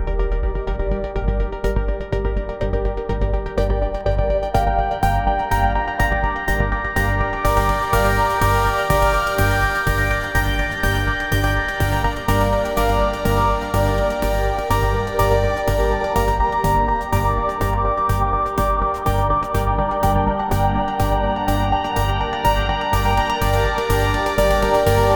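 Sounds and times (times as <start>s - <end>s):
high energy progressive house music: 0.0s - 25.1s.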